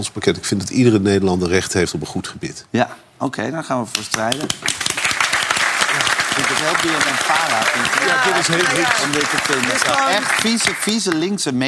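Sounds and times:
speech: 0:00.0 - 0:05.0, 0:06.4 - 0:11.6
studio audience applause: 0:04.3 - 0:11.5.

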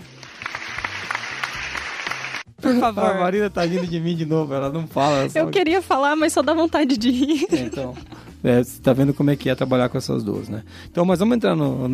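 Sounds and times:
applause: 0:00.0 - 0:02.5
speech: 0:02.7 - 0:11.9
laughter: 0:03.4 - 0:04.2, 0:06.9 - 0:08.3.

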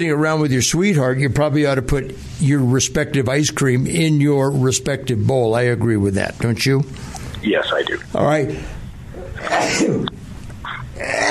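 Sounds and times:
speech: 0:00.0 - 0:08.8, 0:09.4 - 0:10.1
rough noise: 0:00.0 - 0:11.2
person sneezing: 0:09.2 - 0:11.2.

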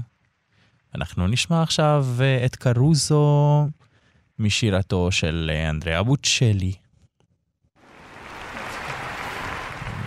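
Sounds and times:
speech: 0:00.9 - 0:06.8
audience applause: 0:07.9 - 0:10.0.

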